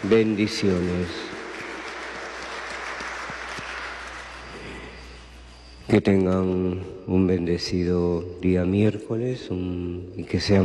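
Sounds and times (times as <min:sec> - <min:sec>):
speech: 0:00.0 - 0:01.3, 0:05.9 - 0:10.6
crowd applause for birthday celebrants: 0:00.0 - 0:05.2.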